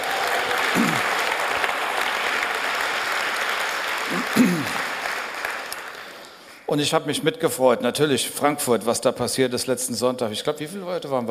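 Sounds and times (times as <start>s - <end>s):
audience applause: 0.0s - 6.6s
speech: 6.7s - 11.2s.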